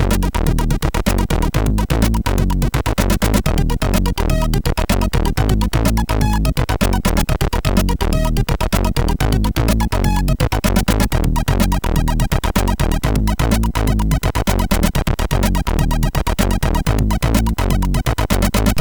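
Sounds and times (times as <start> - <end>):
background tune on MOS6581R4 SID chip: 0.0 - 18.8.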